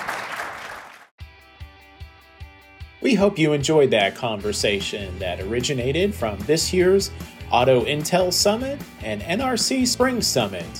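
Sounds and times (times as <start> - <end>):
audience applause: 0.0 - 1.1
music with steady bass beat: 1.2 - 3.3, 4.4 - 10.7
speech: 3.0 - 10.7.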